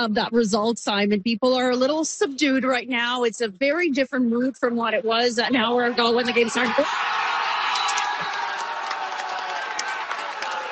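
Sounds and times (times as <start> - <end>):
speech: 0.0 - 7.1
crowd cheering after a goal: 5.5 - 10.7.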